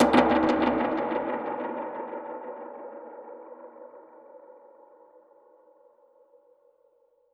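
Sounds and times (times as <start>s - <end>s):
dub percussion hit: 0.0s - 1.7s.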